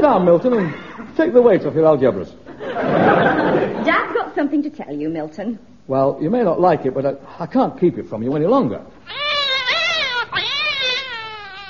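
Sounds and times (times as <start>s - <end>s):
laughter: 0.0s - 1.2s, 2.5s - 4.1s
speech: 0.0s - 3.3s, 3.9s - 9.3s
cat yowling: 9.1s - 11.6s.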